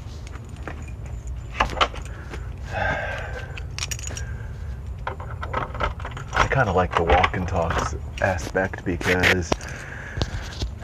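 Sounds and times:
metal keys jangling and scraping in a door lock: 0:00.2 - 0:02.6, 0:03.3 - 0:07.4
speech: 0:06.6 - 0:09.9.

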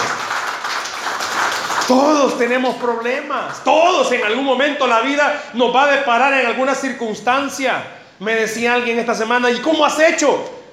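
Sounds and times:
crowd applauding: 0:00.0 - 0:02.7
speech: 0:01.9 - 0:10.6.

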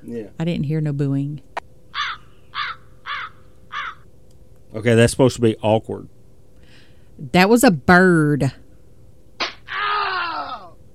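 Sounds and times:
speech: 0:00.0 - 0:01.5, 0:04.7 - 0:06.2, 0:07.2 - 0:08.6
slap sound effect: 0:09.4 - 0:09.6.

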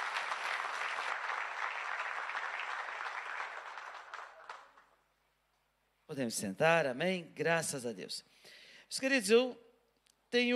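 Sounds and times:
audience applauding: 0:00.0 - 0:05.0
speech: 0:06.1 - 0:09.6, 0:10.3 - 0:10.5.

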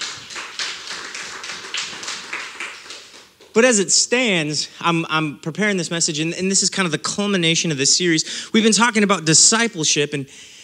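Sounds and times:
audience clapping: 0:00.0 - 0:03.8
speech: 0:03.6 - 0:10.6.

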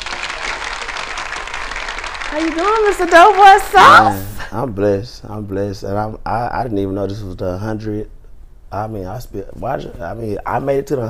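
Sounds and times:
audience applause welcoming a guest onto a show: 0:00.0 - 0:04.1
speech: 0:02.3 - 0:11.0.

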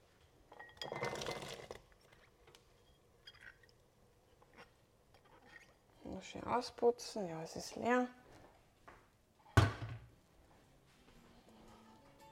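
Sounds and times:
vegetables poured from a bowl into a pot of boiling water: 0:00.8 - 0:01.9
speech: 0:06.2 - 0:08.2.

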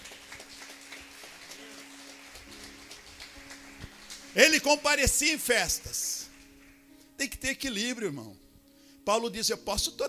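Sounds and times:
audience applauding: 0:00.0 - 0:06.9
speech: 0:04.4 - 0:06.1, 0:07.4 - 0:08.4, 0:09.0 - 0:10.0.

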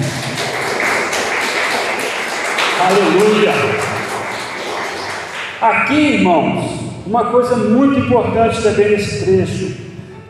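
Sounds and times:
applause: 0:00.0 - 0:05.8
speech: 0:02.8 - 0:03.9, 0:05.6 - 0:09.8.

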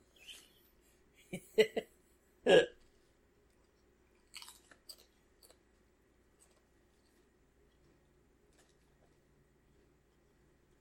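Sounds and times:
chewing Extreme Pringles potato chips: 0:02.8 - 0:09.3.

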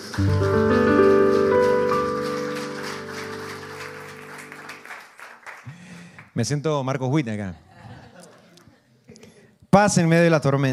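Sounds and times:
crowd clapping: 0:00.0 - 0:06.4
sustained keyboard chords: 0:00.1 - 0:05.1
speech: 0:00.2 - 0:00.8, 0:06.4 - 0:07.6, 0:09.7 - 0:10.7
laughter: 0:07.5 - 0:09.0.

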